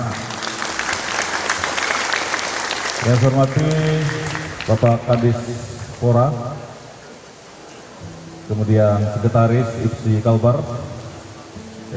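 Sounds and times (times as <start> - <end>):
audience applause: 0.0 - 5.6
speech: 3.0 - 6.6, 8.5 - 10.9.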